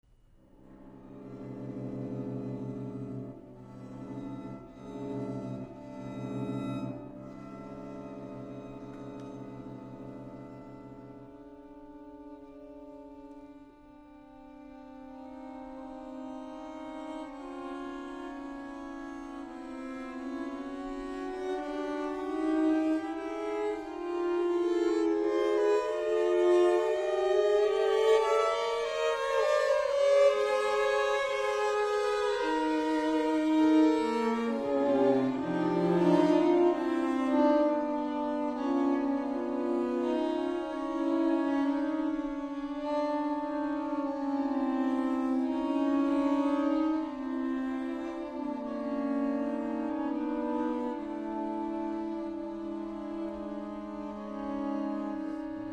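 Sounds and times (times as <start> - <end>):
string quartet: 0.0 - 55.7.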